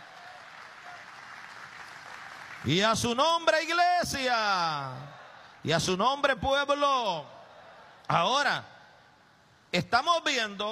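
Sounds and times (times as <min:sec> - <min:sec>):
church congregation clapping in praise during a sermon: 0:00.0 - 0:04.7
speech: 0:02.6 - 0:07.4, 0:08.1 - 0:08.7, 0:09.7 - 0:10.7.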